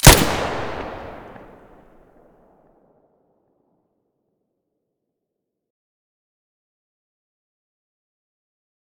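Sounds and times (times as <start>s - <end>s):
weapon muzzle blasts: 0.0s - 1.8s.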